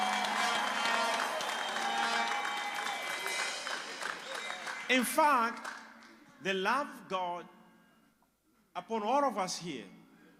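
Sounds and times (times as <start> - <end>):
audience clapping as offering of praise: 0.0 - 6.3
speech: 4.9 - 5.7, 6.4 - 7.6, 8.8 - 10.0.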